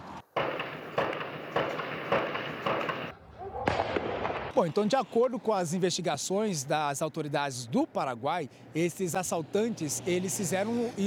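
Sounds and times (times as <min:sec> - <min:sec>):
rifle gunshots: 0:00.4 - 0:04.6
speech: 0:04.6 - 0:11.0.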